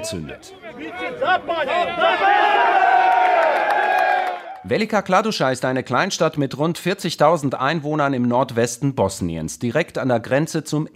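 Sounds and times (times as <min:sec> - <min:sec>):
speech: 0:00.0 - 0:03.2, 0:04.6 - 0:10.9
crowd shouting and cheering: 0:00.0 - 0:04.7
faint clapping: 0:03.0 - 0:04.6.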